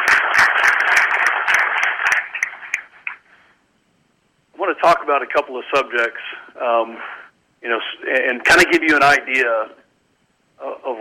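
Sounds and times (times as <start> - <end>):
audience round of applause: 0.0 - 3.2
speech: 5.1 - 9.8, 10.6 - 10.9.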